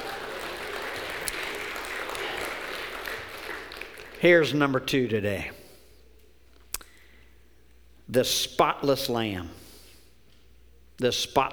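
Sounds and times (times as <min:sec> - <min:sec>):
audience applause: 0:00.0 - 0:04.6
speech: 0:04.2 - 0:05.6, 0:08.1 - 0:09.6, 0:11.0 - 0:11.5.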